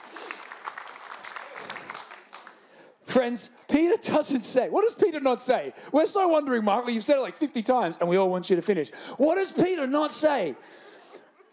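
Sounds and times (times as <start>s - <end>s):
audience round of applause: 0.0s - 3.0s
speech: 3.1s - 10.9s.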